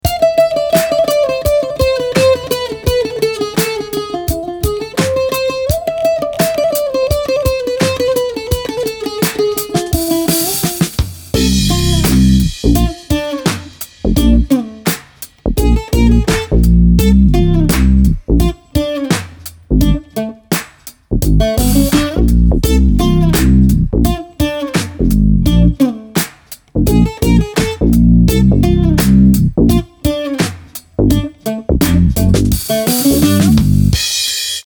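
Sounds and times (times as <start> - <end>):
ethnic world music: 0.0 - 34.4.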